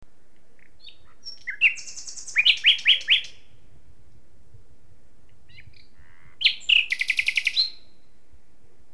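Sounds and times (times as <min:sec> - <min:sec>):
Common nightingale singing: 0:00.6 - 0:03.6, 0:05.5 - 0:08.1.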